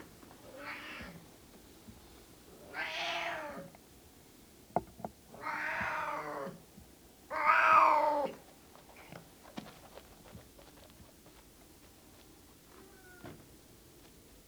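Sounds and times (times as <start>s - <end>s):
male cat meowing: 2.7s - 3.7s, 5.4s - 6.5s, 7.3s - 8.3s, 12.8s - 13.3s.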